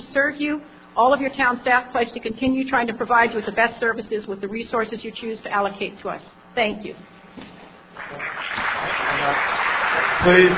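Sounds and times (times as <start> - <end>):
speech: 0.2 - 9.6, 10.2 - 10.5
audience clapping: 8.0 - 10.5.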